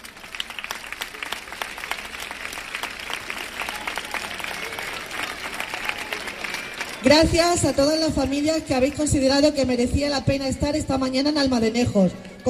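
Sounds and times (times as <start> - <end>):
audience applause: 0.0 - 8.9
speech: 7.0 - 12.4.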